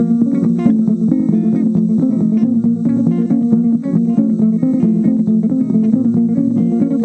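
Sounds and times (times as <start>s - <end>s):
plena music: 0.0s - 7.0s.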